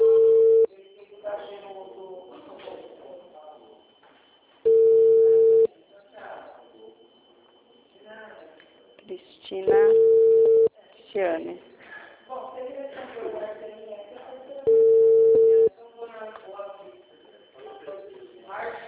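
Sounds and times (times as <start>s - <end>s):
telephone call transfer tone beeps: 0.0s - 0.7s, 4.7s - 5.7s, 9.6s - 10.7s, 14.7s - 15.7s
people talking: 0.0s - 3.9s, 5.0s - 18.8s.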